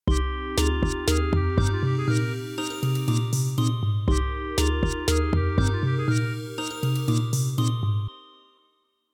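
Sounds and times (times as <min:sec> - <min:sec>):
waltz music: 0:00.1 - 0:08.4.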